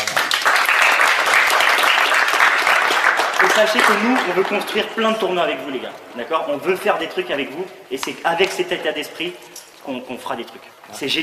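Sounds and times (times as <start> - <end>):
audience applause: 0.0 - 5.3
speech: 3.6 - 11.2.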